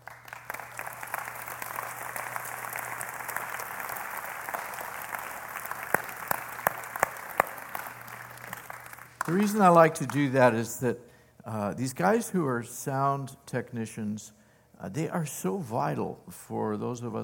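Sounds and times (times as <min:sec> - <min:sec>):
audience applause for the sound technician: 0:00.0 - 0:10.5
speech: 0:09.3 - 0:17.2.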